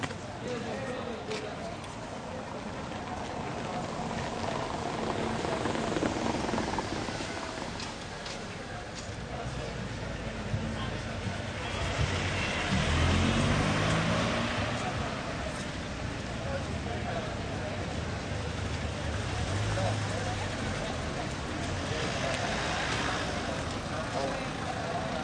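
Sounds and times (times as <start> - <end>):
light sparse evening crowd in a city restaurant area: 0.0 - 25.2
car in a city restaurant area: 2.1 - 25.2.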